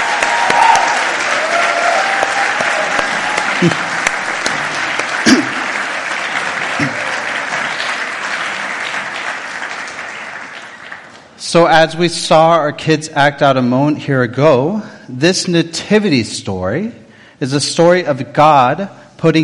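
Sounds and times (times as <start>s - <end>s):
audience applause: 0.0s - 11.4s
speech: 3.6s - 3.8s, 11.5s - 19.4s.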